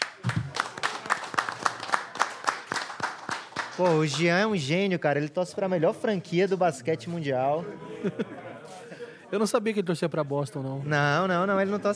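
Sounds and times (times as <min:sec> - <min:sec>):
audience applause: 0:00.0 - 0:04.5
speech: 0:03.8 - 0:08.5, 0:09.3 - 0:11.9
laughter: 0:07.5 - 0:09.3.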